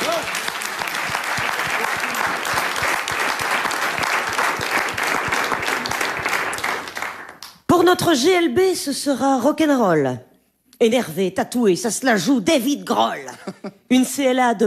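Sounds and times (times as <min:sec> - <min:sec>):
audience applause: 0:00.0 - 0:07.5
speech: 0:08.0 - 0:14.6
laughter: 0:13.2 - 0:13.9.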